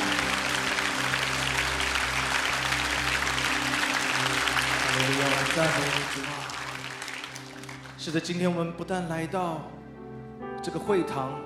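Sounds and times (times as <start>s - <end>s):
church congregation applauding during a worship service: 0.0s - 8.4s
speech: 5.6s - 6.4s, 8.0s - 9.8s, 10.6s - 11.4s.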